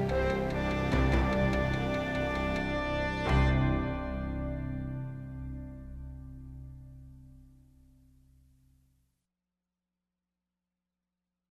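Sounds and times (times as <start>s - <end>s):
hard promo music bed: 0.0s - 6.5s.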